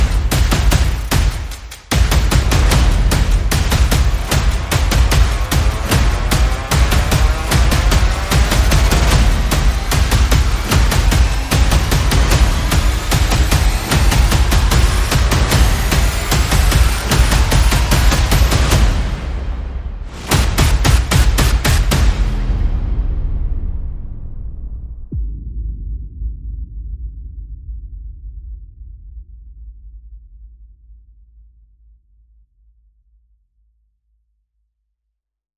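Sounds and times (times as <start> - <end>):
percussion: 0.0 - 23.6
sound effects: 0.0 - 25.4.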